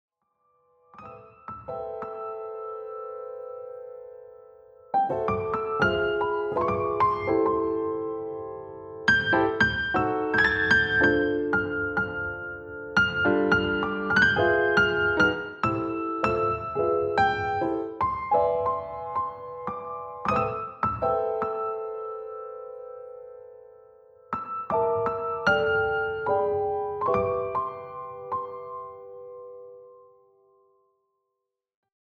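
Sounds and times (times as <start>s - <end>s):
piano Christmas medley: 0.3s - 31.2s.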